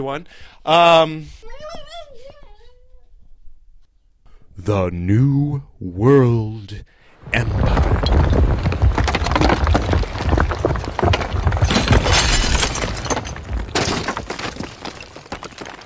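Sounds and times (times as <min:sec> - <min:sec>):
speech: 0:00.0 - 0:01.8, 0:04.6 - 0:08.7
wall breaking apart as a sound effect with crashing and shattering: 0:07.2 - 0:15.8
wooden cracking and splintering: 0:07.2 - 0:15.8.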